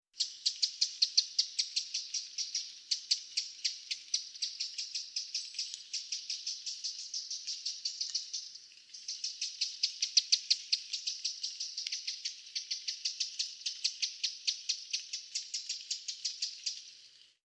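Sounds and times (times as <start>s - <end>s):
Eurasian wren ticking calls: 0.2s - 17.0s.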